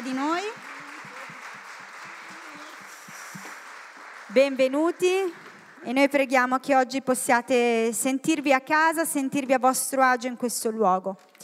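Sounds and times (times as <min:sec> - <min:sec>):
audience applauding: 0:00.0 - 0:06.3
speech: 0:04.4 - 0:11.3.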